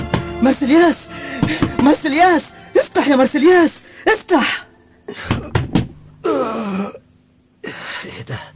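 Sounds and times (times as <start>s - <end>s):
speech: 0.4s - 5.6s, 6.3s - 7.0s
knocking on a door: 5.3s - 6.0s.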